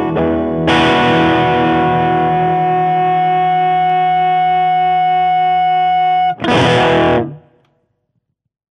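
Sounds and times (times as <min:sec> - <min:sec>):
guitar through TS808 overdrive with more gain: 0:00.0 - 0:07.6.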